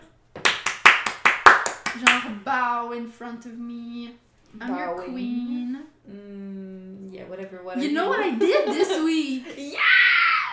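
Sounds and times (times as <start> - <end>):
hands clapping: 0.4 - 2.3
speech: 2.0 - 10.0
laughter: 8.4 - 9.8.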